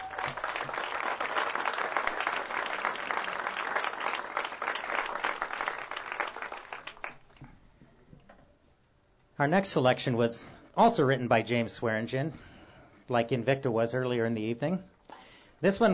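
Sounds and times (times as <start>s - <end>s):
audience applause: 0.0s - 7.4s
speech: 9.4s - 12.5s, 13.1s - 14.9s, 15.6s - 15.9s.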